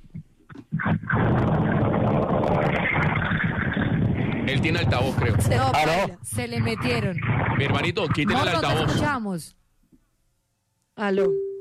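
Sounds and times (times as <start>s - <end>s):
wind noise over a phone call: 0.7s - 9.1s
speech: 4.5s - 9.6s, 11.0s - 11.5s.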